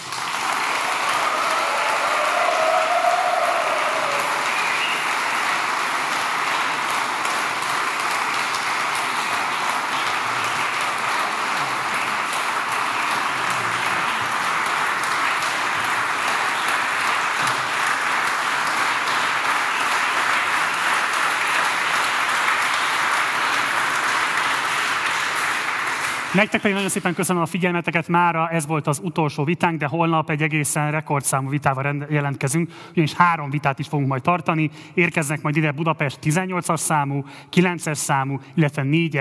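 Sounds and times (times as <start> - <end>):
audience applause: 0.0 - 27.4
speech: 26.4 - 39.1.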